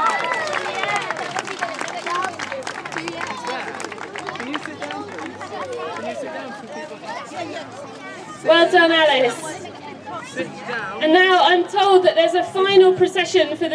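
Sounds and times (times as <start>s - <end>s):
audience applause: 0.0s - 6.4s
speech: 8.4s - 9.4s, 10.4s - 13.7s.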